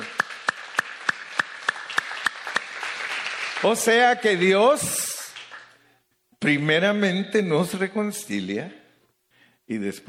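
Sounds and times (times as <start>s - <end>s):
audience clapping in steady rhythm then scattered applause: 0.0s - 6.0s
speech: 3.6s - 5.0s, 6.4s - 8.8s, 9.7s - 10.0s.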